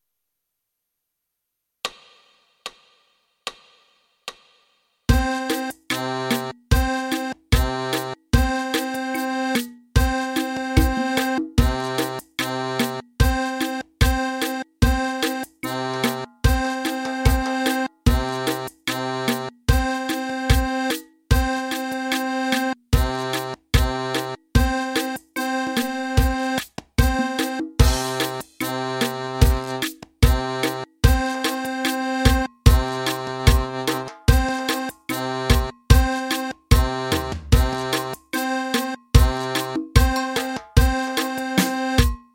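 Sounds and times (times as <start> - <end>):
accordion played with the right hand: 5.1 - 42.3.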